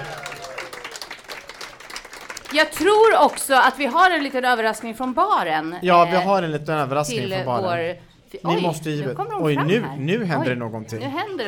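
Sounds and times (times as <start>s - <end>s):
audience applause: 0.0s - 5.1s
speech: 2.5s - 11.4s.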